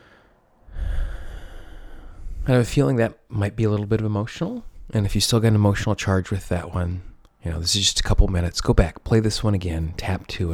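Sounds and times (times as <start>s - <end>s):
deep breath during a guided affirmation exercise: 0.0s - 2.6s
speech: 2.5s - 10.5s.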